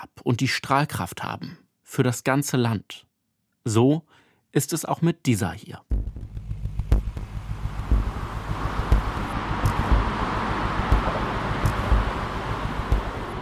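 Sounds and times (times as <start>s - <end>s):
speech: 0.2s - 6.2s
distant Bundesautobahn 5 motorway traffic rumble in southern Frankfurt: 6.9s - 13.4s.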